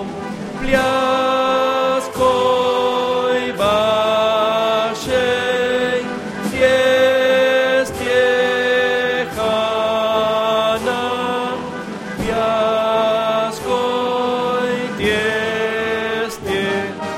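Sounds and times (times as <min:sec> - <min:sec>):
tenors singing opera dance: 0:00.0 - 0:17.1.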